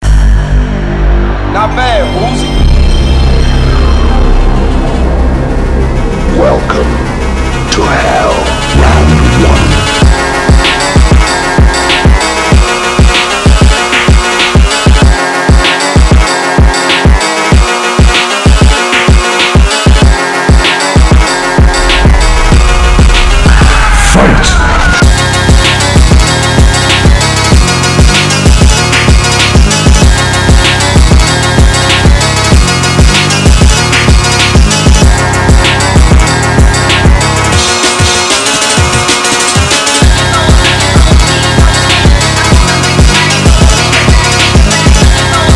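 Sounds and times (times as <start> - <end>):
phonk music: 0.0 - 45.5.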